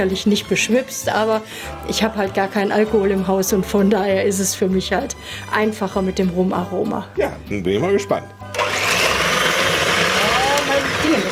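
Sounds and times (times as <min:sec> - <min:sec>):
speech: 0:00.0 - 0:08.6
kitchen mixer running: 0:08.5 - 0:11.3.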